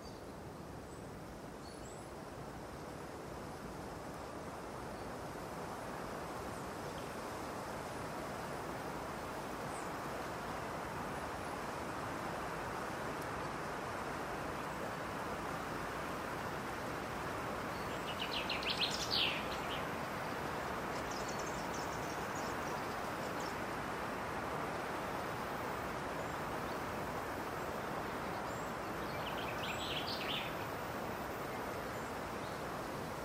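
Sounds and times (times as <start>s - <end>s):
wind in a lush green forest in spring: 0.0s - 33.2s
rustling of leaves and trees: 1.4s - 33.2s
birds in a green spring forest: 17.2s - 24.8s, 26.0s - 33.2s.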